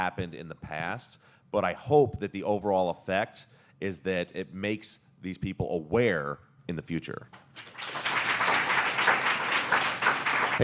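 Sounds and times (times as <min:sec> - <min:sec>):
speech: 0:00.0 - 0:08.0
audience clapping: 0:07.4 - 0:10.6.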